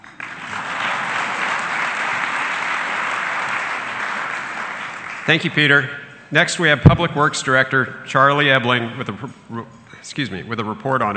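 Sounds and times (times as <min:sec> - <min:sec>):
room full of people applauding: 0:00.0 - 0:05.9
speech: 0:05.3 - 0:11.1.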